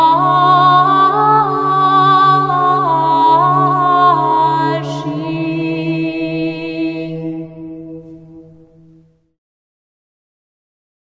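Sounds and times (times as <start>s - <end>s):
Byzantine chant in mode 5: 0.0s - 8.8s.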